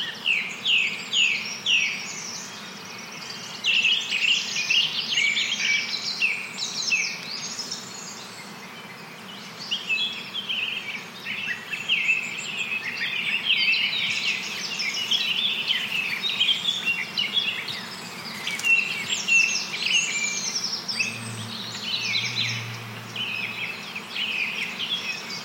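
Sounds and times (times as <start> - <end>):
forest birdsong chirps and trills: 0.0 - 25.4
low steady hum: 20.5 - 24.0
brief deeper drone: 20.9 - 23.7.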